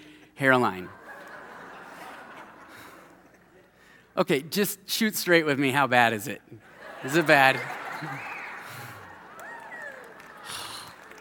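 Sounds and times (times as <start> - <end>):
speech: 0.4 - 1.0, 4.2 - 8.3
laughter: 0.9 - 3.8, 6.6 - 11.1
crowd clapping: 6.8 - 11.1
whoops and cheers: 7.9 - 11.1.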